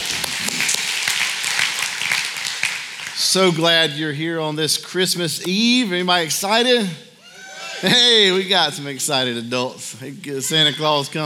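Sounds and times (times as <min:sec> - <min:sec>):
audience clapping: 0:00.0 - 0:03.6
speech: 0:03.2 - 0:07.1, 0:07.8 - 0:11.2.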